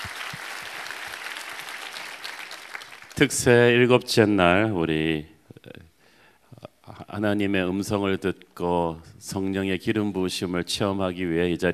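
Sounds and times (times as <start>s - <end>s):
audience applause: 0.0s - 3.4s
speech: 3.2s - 5.3s, 7.2s - 11.7s.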